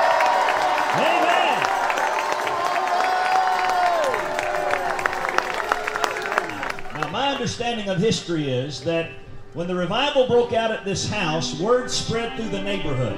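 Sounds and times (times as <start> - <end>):
crowd clapping: 0.0 - 9.8
crowd shouting and cheering in celebration: 0.0 - 13.1
speech: 7.4 - 13.1.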